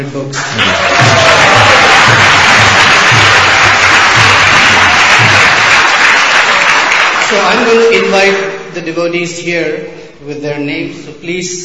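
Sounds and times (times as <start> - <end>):
speech: 0.0 - 1.4, 7.3 - 11.6
large audience applause: 0.4 - 8.1
faint regular low thump: 1.0 - 5.7.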